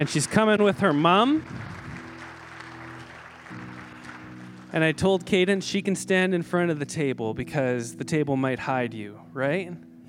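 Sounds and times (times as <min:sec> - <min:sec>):
speech: 0:00.0 - 0:01.7, 0:04.7 - 0:09.9
church congregation applauding: 0:00.0 - 0:05.7.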